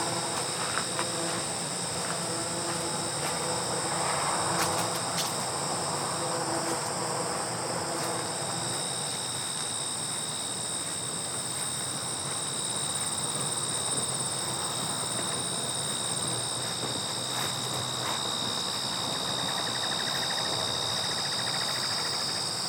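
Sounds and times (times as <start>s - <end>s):
grasshoppers whirring: 0.0s - 22.6s
footsteps crunching on gravel: 0.1s - 3.6s, 10.1s - 19.1s.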